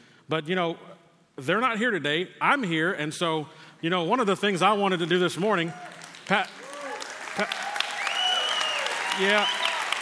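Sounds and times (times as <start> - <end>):
speech: 0.3 - 6.6, 7.4 - 7.6, 9.2 - 9.7
church congregation applauding during a Sunday morning service: 4.9 - 10.0.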